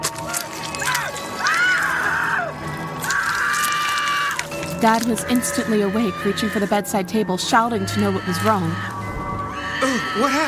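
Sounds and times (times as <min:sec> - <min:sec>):
woman screaming: 0:00.8 - 0:04.4, 0:05.0 - 0:06.8, 0:07.6 - 0:10.4
speech: 0:04.8 - 0:08.9, 0:10.1 - 0:10.4.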